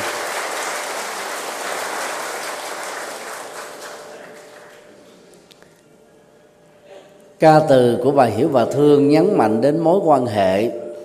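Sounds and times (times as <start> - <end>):
audience applause: 0.0 - 5.3
speech: 7.4 - 10.8.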